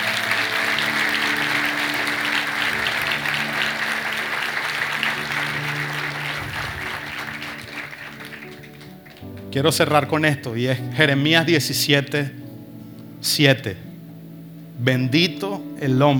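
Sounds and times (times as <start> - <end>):
audience applause: 0.0 - 9.5
low musical drone: 0.0 - 16.1
speech: 9.5 - 12.4, 13.2 - 13.9, 14.8 - 16.1.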